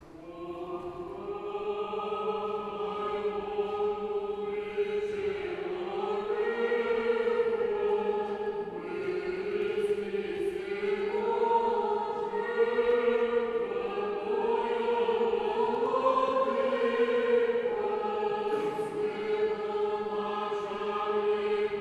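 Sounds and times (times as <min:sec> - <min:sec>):
choir chanting: 0:00.0 - 0:21.7.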